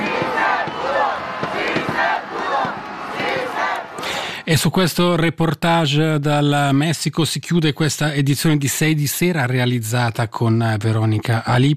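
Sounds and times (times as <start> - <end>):
large crowd chanting and shouting in unison: 0.0 - 4.5
speech: 4.5 - 11.7.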